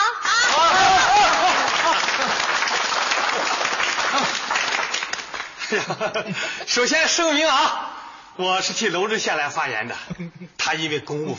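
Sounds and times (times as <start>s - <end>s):
crowd applause: 0.2s - 5.8s
laughter: 0.3s - 2.5s, 5.6s - 6.7s
speech: 5.9s - 11.3s.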